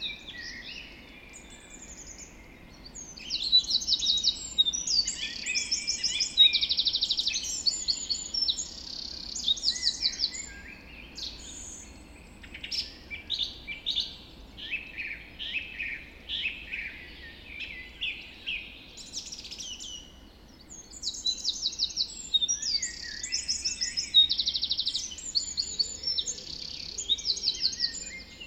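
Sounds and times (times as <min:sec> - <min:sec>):
birds dawn chorus: 0:00.0 - 0:28.4.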